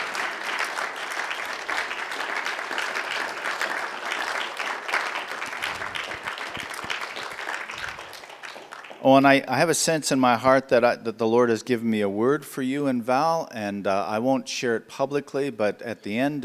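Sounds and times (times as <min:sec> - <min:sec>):
crowd applauding: 0:00.0 - 0:09.5
speech: 0:09.0 - 0:16.4.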